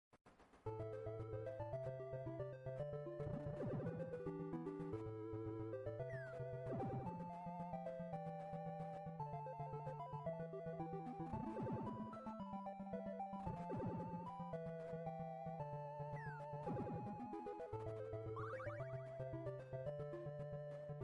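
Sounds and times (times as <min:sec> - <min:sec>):
video game music: 0:00.6 - 0:21.0.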